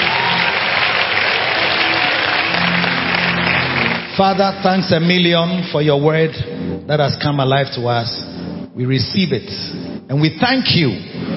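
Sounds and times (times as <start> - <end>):
audience clapping hands: 0.0 - 5.2
speech: 4.2 - 11.3.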